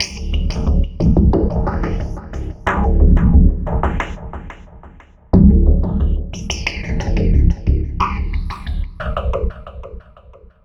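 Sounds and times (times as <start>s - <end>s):
remixed acoustic bass: 0.2s - 3.8s, 5.4s - 9.0s.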